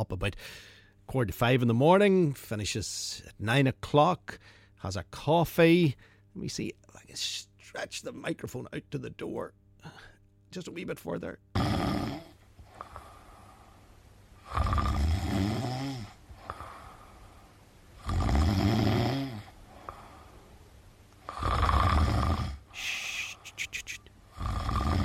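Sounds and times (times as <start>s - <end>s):
speech: 0.0s - 12.0s
man snoring asleep in office: 11.5s - 13.6s, 14.4s - 17.1s, 18.0s - 20.3s, 21.2s - 23.6s, 24.3s - 25.0s.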